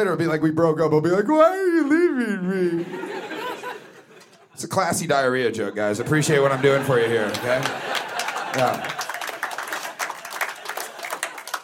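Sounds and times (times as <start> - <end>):
speech: 0.0 - 3.2, 4.6 - 9.0
laughter: 1.5 - 4.7, 5.9 - 11.6
audience applause: 6.4 - 11.6.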